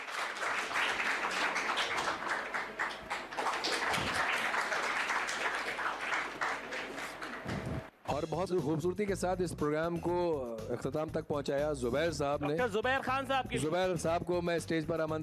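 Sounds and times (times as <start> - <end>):
loud applause from audience: 0.0 - 7.9
speech: 8.2 - 15.2.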